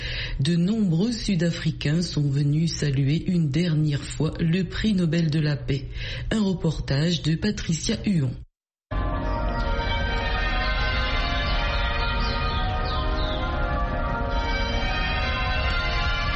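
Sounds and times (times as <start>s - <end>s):
speech: 0.4s - 8.4s
cathedral bells ringing: 8.9s - 16.3s.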